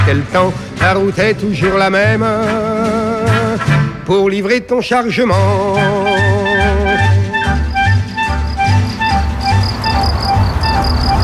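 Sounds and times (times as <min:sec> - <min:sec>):
speech: 0:00.1 - 0:06.1
crickets chirping: 0:07.3 - 0:11.2.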